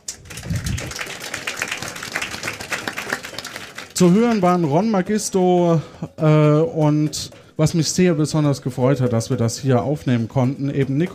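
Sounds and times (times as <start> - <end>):
applause: 0.0 - 5.2
speech: 4.0 - 11.1.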